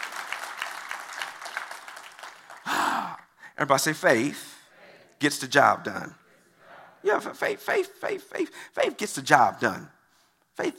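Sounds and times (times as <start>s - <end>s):
audience applause: 0.0s - 3.3s
speech: 3.6s - 4.5s, 5.2s - 6.2s, 7.0s - 10.0s, 10.6s - 10.7s.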